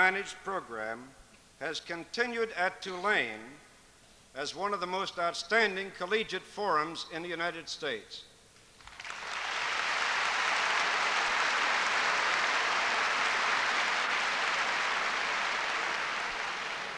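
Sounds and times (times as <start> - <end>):
speech: 0.0 - 3.7, 4.4 - 8.3
student audience applause: 8.8 - 16.9.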